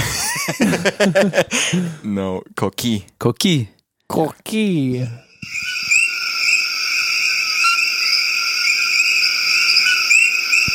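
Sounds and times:
laughter: 0:00.0 - 0:01.9
speech: 0:00.5 - 0:05.7
chorus of tiny coqui frogs whistling calls: 0:05.4 - 0:10.7.

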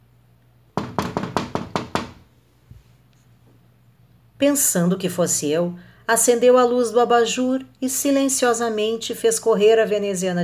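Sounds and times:
knocking on a bedroom window: 0:00.8 - 0:02.3
speech: 0:04.4 - 0:10.4.

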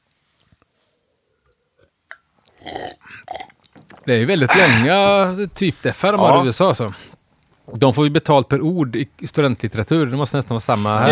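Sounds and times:
person drinking water: 0:01.4 - 0:04.9
speech: 0:04.0 - 0:07.1, 0:07.7 - 0:11.0.

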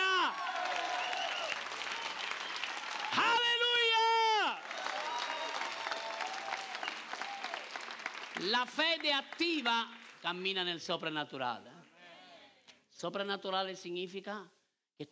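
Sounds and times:
audience applause: 0:00.0 - 0:10.4
speech: 0:08.4 - 0:11.7, 0:13.0 - 0:15.1.

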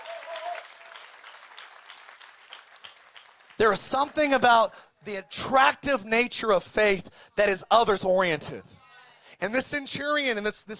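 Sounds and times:
audience applause: 0:00.0 - 0:04.3
speech: 0:03.6 - 0:08.8, 0:09.4 - 0:10.7.

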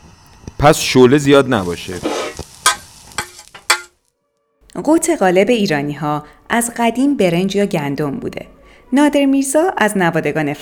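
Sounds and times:
sheep tail fat melting and sizzling in pot: 0:00.0 - 0:04.0
speech: 0:00.6 - 0:02.2, 0:04.8 - 0:10.6
stirring utensil knocking against the pan: 0:02.6 - 0:04.0.

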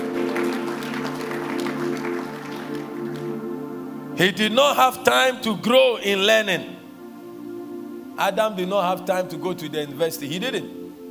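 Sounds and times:
audience clapping hands: 0:00.0 - 0:04.2
speech: 0:04.2 - 0:06.7, 0:08.2 - 0:10.8.

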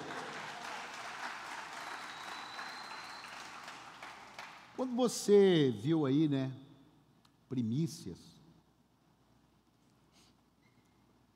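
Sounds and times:
audience applauding: 0:00.0 - 0:04.8
speech: 0:04.8 - 0:06.6, 0:07.5 - 0:08.4.

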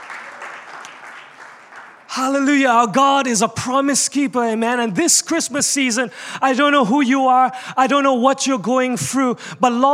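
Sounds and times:
audience clapping: 0:00.0 - 0:02.6
speech: 0:02.1 - 0:09.9.

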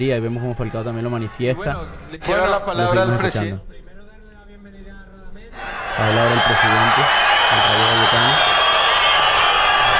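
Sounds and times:
speech: 0:00.0 - 0:03.8, 0:05.6 - 0:08.3
stadium crowd roaring and applauding: 0:05.6 - 0:09.9.

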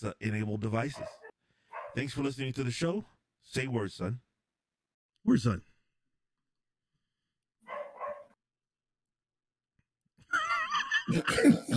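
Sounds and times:
speech: 0:00.0 - 0:01.2, 0:02.0 - 0:04.3, 0:05.2 - 0:05.7, 0:11.1 - 0:11.7
dog barking: 0:00.9 - 0:02.0, 0:07.6 - 0:08.4
laughter: 0:10.3 - 0:11.7.

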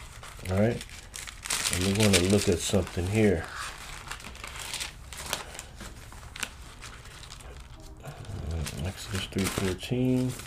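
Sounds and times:
book page crinkling and rustling: 0:00.0 - 0:10.4
book page tearing: 0:00.0 - 0:10.4
speech: 0:00.5 - 0:00.9, 0:01.7 - 0:03.6, 0:09.6 - 0:10.4.

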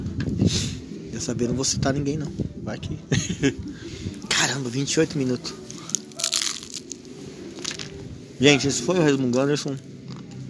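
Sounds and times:
speech: 0:00.5 - 0:05.6, 0:08.4 - 0:09.9
laughter: 0:03.1 - 0:04.0
biting into cold pizza: 0:05.7 - 0:07.0.

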